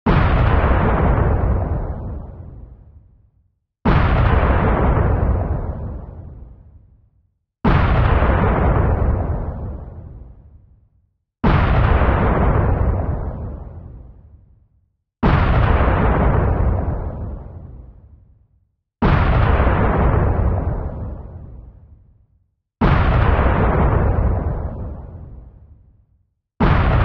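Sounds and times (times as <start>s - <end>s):
bomb blast: 0.1s - 2.8s, 3.8s - 6.6s, 7.6s - 10.5s, 11.4s - 14.3s, 15.2s - 18.0s, 19.0s - 21.9s, 22.8s - 25.6s, 26.6s - 27.0s.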